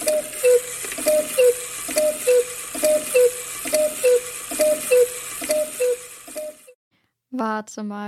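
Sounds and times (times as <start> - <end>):
cuckoo clock striking the hour: 0.0 - 6.8.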